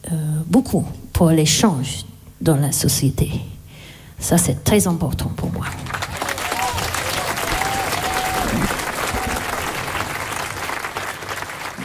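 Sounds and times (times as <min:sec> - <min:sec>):
speech: 0:00.1 - 0:03.5, 0:04.2 - 0:06.0, 0:08.6 - 0:08.8
audience clapping: 0:05.6 - 0:11.8.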